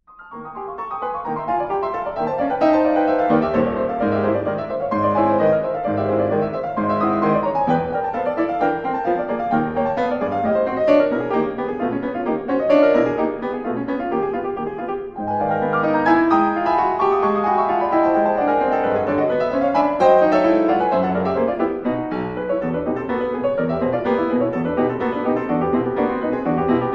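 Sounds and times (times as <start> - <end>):
piano prelude, allegretto scherzando: 0.0 - 26.9.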